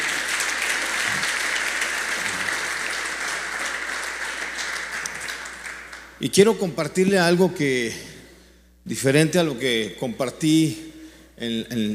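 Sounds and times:
audience applauding loudly: 0.0s - 6.2s
speech: 6.2s - 8.1s, 8.9s - 11.9s.

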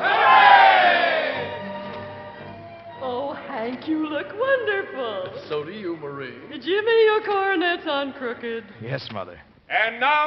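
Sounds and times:
crowd cheering hooray for the Jubilee: 0.0s - 1.6s
speech: 3.8s - 10.2s.

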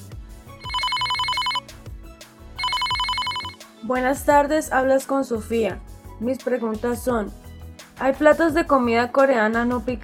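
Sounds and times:
telephone ringing for incoming call: 0.6s - 1.8s, 2.6s - 3.6s
speech: 3.9s - 7.4s, 8.0s - 10.0s.

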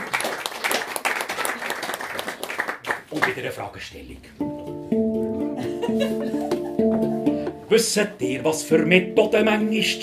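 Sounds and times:
audience applause: 0.0s - 3.4s
speech: 3.1s - 4.4s, 5.9s - 6.4s, 7.7s - 10.0s
laughter: 5.6s - 7.2s.

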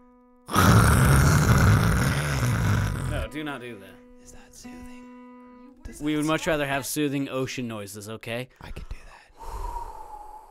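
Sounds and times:
person imitating white noise: 0.5s - 3.2s
speech: 3.4s - 5.1s, 5.9s - 8.9s.

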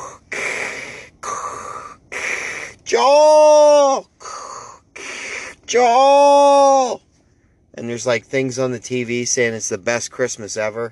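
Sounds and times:
voice imitating Darth Vader-like breathing of a woman on an oxygen tank: 0.0s - 2.9s, 4.1s - 5.7s
speech: 2.9s - 3.4s, 5.7s - 6.3s, 7.8s - 10.9s.

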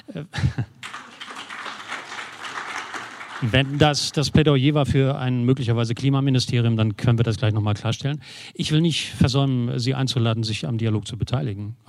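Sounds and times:
speech: 0.2s - 0.7s, 3.4s - 11.8s
audience clapping: 0.7s - 4.7s.

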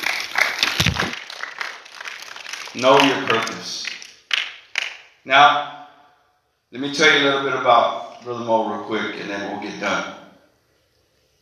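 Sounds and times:
audience clapping: 0.0s - 5.2s
speech: 2.8s - 3.9s, 5.2s - 5.8s, 6.7s - 10.2s.

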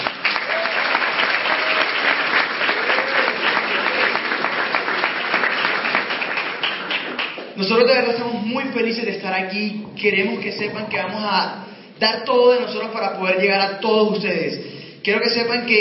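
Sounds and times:
audience applause: 0.0s - 7.6s
speech: 7.6s - 15.8s.

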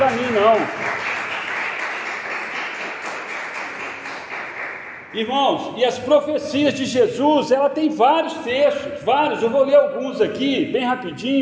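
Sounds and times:
speech: 0.0s - 1.2s, 5.1s - 11.3s
audience applauding: 0.0s - 5.1s.

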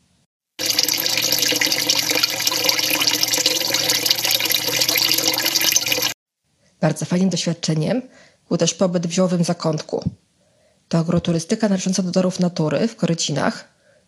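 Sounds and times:
small spring water flowing behind wall: 0.6s - 6.2s
speech: 6.8s - 10.2s, 10.9s - 13.7s.

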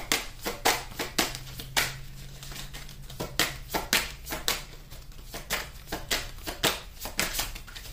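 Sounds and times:
African Goddess oracle cards being shuffled and drawn: 0.0s - 7.9s.

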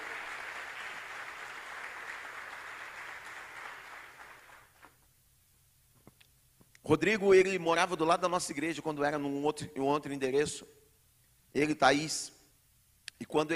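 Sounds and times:
audience applause: 0.0s - 4.9s
speech: 6.9s - 10.8s, 11.6s - 12.4s, 13.2s - 13.5s.

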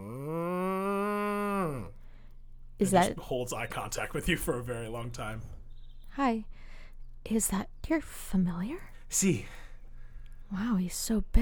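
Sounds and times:
person imitating the moo of a large cow named Roquefort: 0.0s - 2.0s
speech: 2.8s - 5.6s, 6.2s - 6.7s, 7.3s - 9.6s, 10.5s - 11.3s.

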